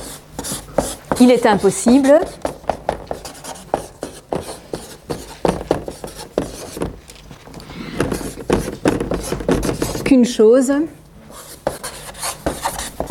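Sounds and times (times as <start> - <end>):
writing on a board: 0.0 - 7.0, 7.6 - 10.1, 11.3 - 13.0
speech: 1.2 - 2.5, 10.1 - 11.0.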